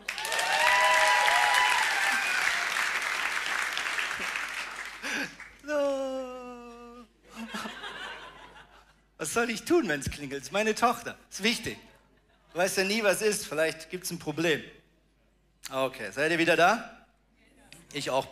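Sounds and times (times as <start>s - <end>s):
audience applause: 0.0s - 5.6s
laughter: 5.0s - 9.0s
speech: 9.3s - 11.9s, 12.5s - 14.8s, 15.6s - 17.0s, 17.9s - 18.2s.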